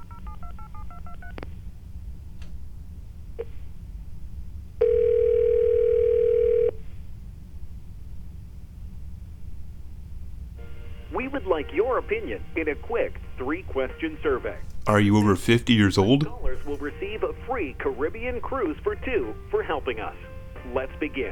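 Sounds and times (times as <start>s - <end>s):
low hum: 0.0s - 21.3s
steady loud telephone tone: 4.8s - 6.8s
speech: 11.4s - 21.3s.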